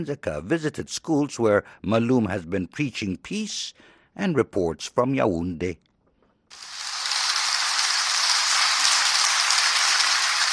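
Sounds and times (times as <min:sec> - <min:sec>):
speech: 0:00.0 - 0:05.9
large group of children applauding: 0:06.6 - 0:10.5.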